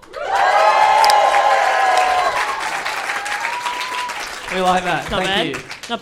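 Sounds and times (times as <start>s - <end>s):
live audience cheering and clapping: 0.0s - 6.0s
high whoops and shouts from a live audience: 0.1s - 4.3s
speech: 4.5s - 6.0s.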